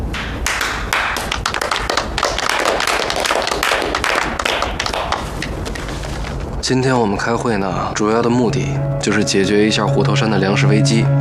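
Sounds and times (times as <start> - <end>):
crowd clapping: 0.0 - 6.4
speech: 6.7 - 11.2.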